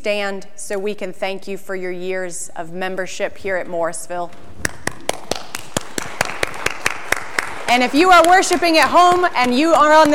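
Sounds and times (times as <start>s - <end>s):
speech: 0.0s - 4.7s, 7.7s - 10.1s
audience clapping: 4.6s - 10.1s.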